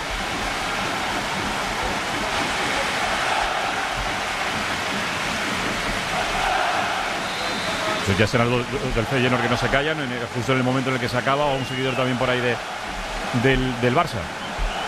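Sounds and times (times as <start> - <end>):
rain: 0.0 - 14.8
speech: 8.1 - 14.4.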